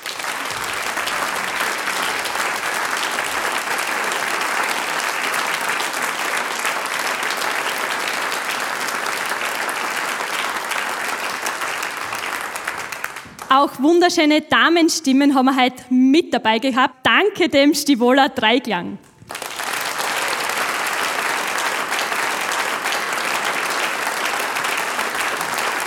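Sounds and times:
audience applause: 0.0 - 13.5, 19.2 - 25.8
speech: 13.6 - 19.1.

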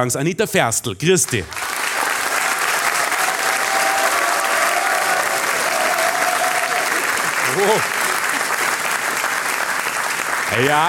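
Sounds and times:
speech: 0.0 - 1.7, 7.6 - 8.0, 10.6 - 10.8
audience applause: 1.4 - 10.8.

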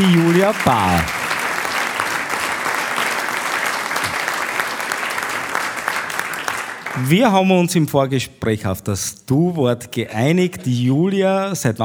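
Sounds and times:
speech: 0.0 - 1.2, 7.0 - 11.8
audience applause: 0.0 - 7.3.

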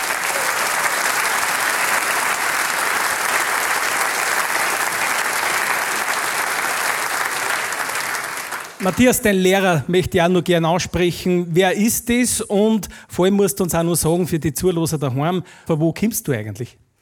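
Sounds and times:
audience applause: 0.0 - 9.7
speech: 8.8 - 16.8.

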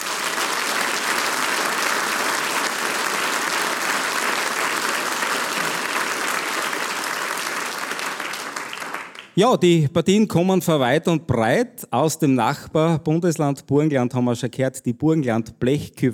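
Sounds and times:
audience applause: 0.0 - 9.4
speech: 9.4 - 16.1.

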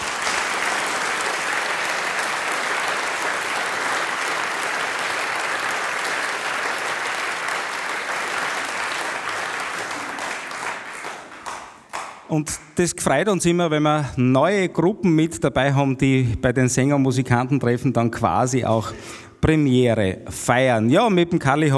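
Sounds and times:
audience applause: 0.0 - 12.3
speech: 12.3 - 21.7.

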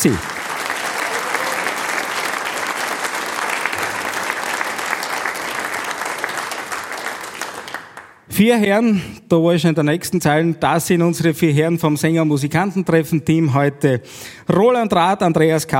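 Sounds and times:
speech: 0.0 - 0.4, 8.4 - 15.7
audience applause: 0.0 - 8.2.

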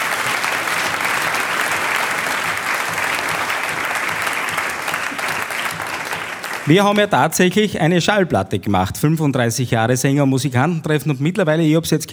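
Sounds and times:
audience applause: 0.0 - 7.2
speech: 6.7 - 12.1.

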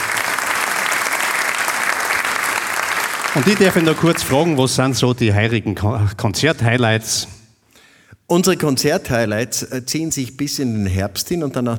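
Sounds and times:
audience applause: 0.0 - 4.8
speech: 3.4 - 7.4, 8.3 - 11.7.

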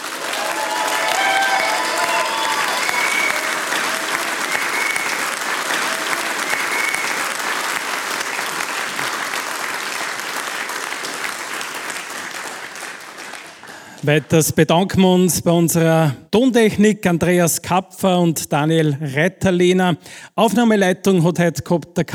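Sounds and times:
audience applause: 0.0 - 14.3
whistles and cheers: 0.2 - 7.9
speech: 14.0 - 22.1.

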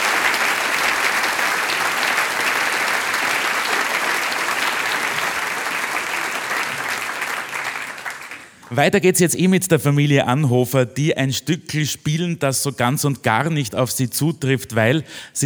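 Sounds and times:
audience applause: 0.0 - 8.8
speech: 8.7 - 15.4.

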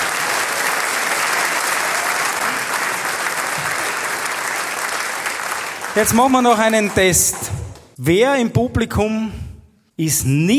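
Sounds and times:
applause from a large hall audience: 0.0 - 8.0
speech: 6.0 - 9.4, 10.0 - 10.5.

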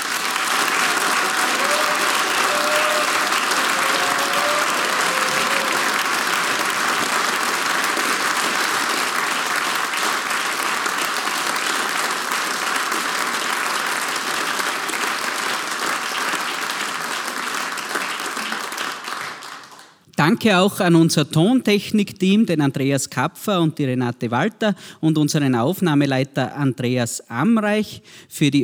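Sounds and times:
audience applause: 0.0 - 20.0
speech: 20.3 - 28.6.

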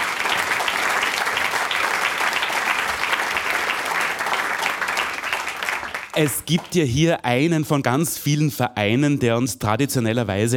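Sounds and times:
crowd applauding: 0.0 - 7.0
speech: 6.2 - 10.5.

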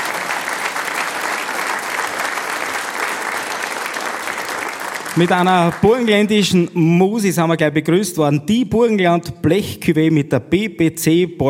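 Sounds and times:
audience applause: 0.0 - 6.5
speech: 5.2 - 11.4.

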